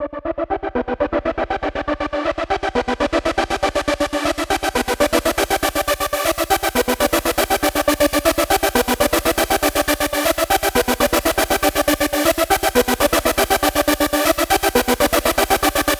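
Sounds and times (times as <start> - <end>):
trance synth: 0.0 - 15.9.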